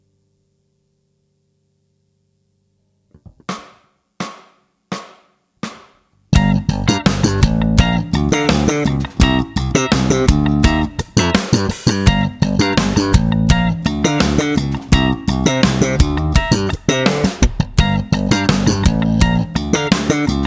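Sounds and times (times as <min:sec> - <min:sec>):
practice music track: 0:06.3 - 0:20.4.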